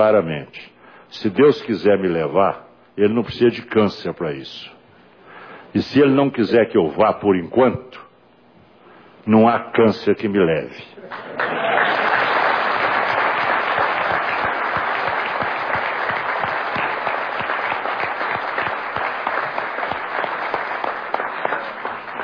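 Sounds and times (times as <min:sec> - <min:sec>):
speech: 0:00.0 - 0:04.8, 0:05.7 - 0:08.0, 0:09.2 - 0:12.0
audience applause: 0:11.1 - 0:22.2.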